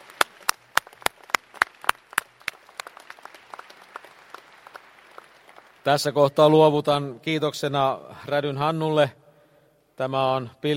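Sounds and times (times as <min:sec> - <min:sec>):
audience applause: 0:00.0 - 0:06.1
speech: 0:05.8 - 0:09.2, 0:10.0 - 0:10.7.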